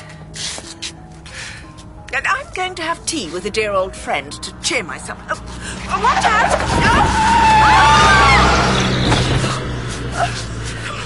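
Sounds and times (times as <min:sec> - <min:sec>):
speech: 0:02.2 - 0:08.1
car losing control and mounting the curb: 0:05.4 - 0:11.0.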